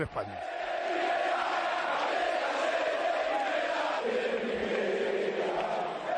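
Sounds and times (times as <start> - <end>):
football crowd chanting in stadium: 0.4 - 6.1.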